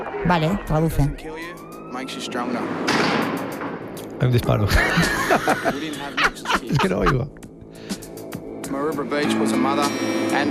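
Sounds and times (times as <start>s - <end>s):
police siren: 0.0s - 2.9s
speech: 0.2s - 7.4s, 8.7s - 10.5s
laughter: 4.5s - 7.4s.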